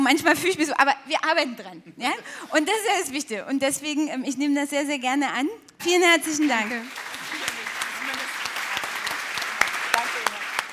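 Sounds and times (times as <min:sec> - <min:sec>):
speech: 0:00.0 - 0:07.2
crowd applauding: 0:06.3 - 0:10.7.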